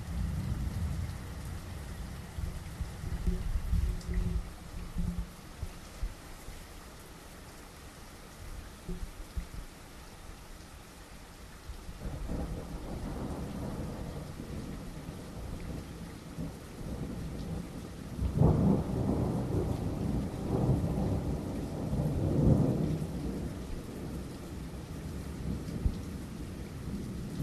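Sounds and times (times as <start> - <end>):
thunderstorm in the early hours: 0.0 - 5.7, 12.0 - 27.4.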